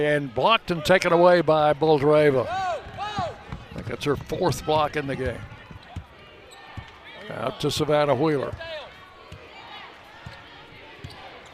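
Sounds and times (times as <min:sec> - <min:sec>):
speech: 0:00.0 - 0:02.6, 0:03.9 - 0:05.5, 0:07.3 - 0:08.7
basketball dribbled during a women's college game, MTSU against New Mexico State: 0:02.8 - 0:06.1.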